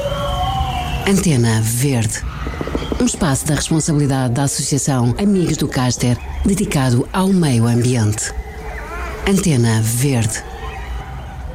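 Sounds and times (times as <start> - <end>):
spotless starling song: 0.2 - 10.9.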